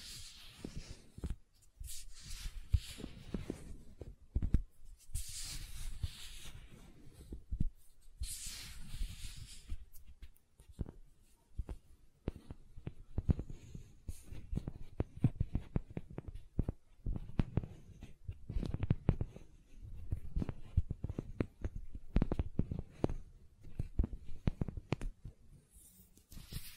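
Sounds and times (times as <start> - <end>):
gentle silicon squishing and rubbing: 0.0 - 26.7
small taps and clicks: 2.8 - 4.7, 9.9 - 25.4.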